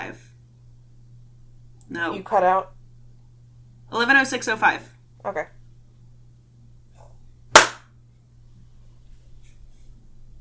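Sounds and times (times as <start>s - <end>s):
faint low hum: 0.0s - 10.3s
speech: 1.9s - 2.8s, 3.9s - 5.6s
single hand clap given as timing practice: 7.6s - 7.9s.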